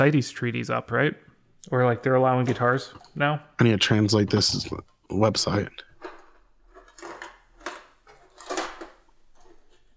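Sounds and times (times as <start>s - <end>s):
speech: 0.0s - 5.9s
objects clattering and knocking in a drawer: 1.8s - 3.2s, 5.8s - 9.9s
rummaging through a drawer: 5.9s - 9.9s.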